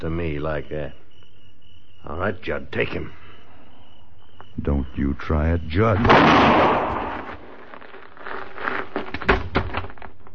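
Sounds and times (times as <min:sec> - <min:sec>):
speech: 0:00.0 - 0:01.0, 0:02.0 - 0:03.2, 0:04.6 - 0:07.0
gunshots in a radio western drama: 0:06.0 - 0:07.5.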